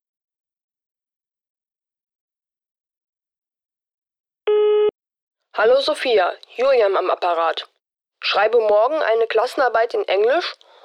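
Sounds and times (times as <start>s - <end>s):
telephone answering machine beep: 4.5s - 4.9s
speech: 5.6s - 10.7s.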